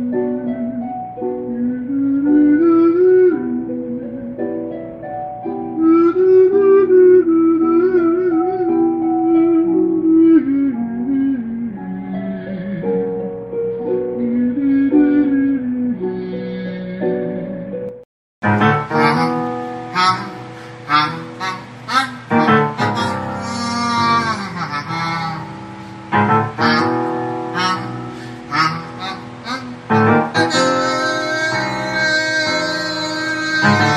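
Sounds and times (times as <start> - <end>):
vocal instrumental music: 0.0 - 33.9.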